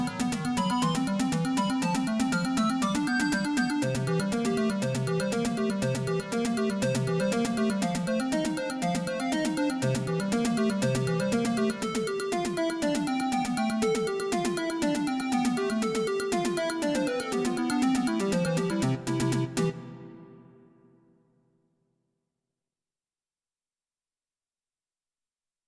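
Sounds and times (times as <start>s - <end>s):
MT-32 synthesizer arcade theme music: 0.0s - 20.4s.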